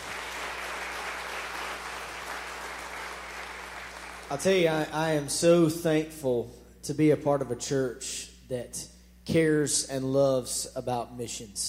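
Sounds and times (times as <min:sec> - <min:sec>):
audience clapping: 0:00.0 - 0:04.6
speech: 0:04.3 - 0:11.6.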